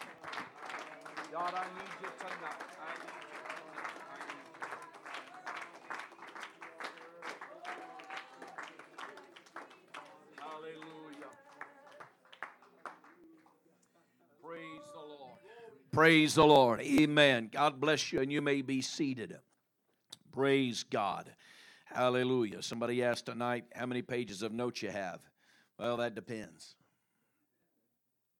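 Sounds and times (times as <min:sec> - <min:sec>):
hands clapping: 0:00.0 - 0:13.9, 0:16.6 - 0:17.2
speech: 0:01.4 - 0:04.1, 0:16.0 - 0:19.5, 0:20.4 - 0:26.8.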